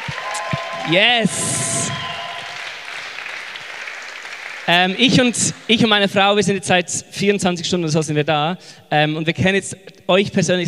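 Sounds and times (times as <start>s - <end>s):
audience applause: 0.0s - 5.8s
speech: 0.9s - 2.1s, 4.7s - 10.6s.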